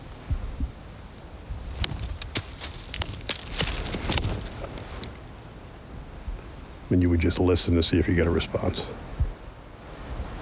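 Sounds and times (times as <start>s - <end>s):
stick knocking on tree trunk: 1.7s - 5.2s
speech: 6.9s - 9.1s.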